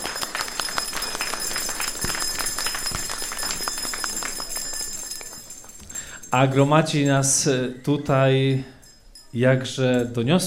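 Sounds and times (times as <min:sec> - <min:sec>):
audience applause: 0:00.0 - 0:05.4
speech: 0:06.3 - 0:10.4.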